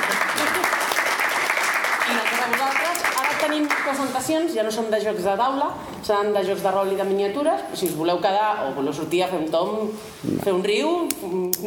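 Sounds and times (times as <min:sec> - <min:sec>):
audience applause: 0:00.0 - 0:04.0
speech: 0:02.5 - 0:11.6.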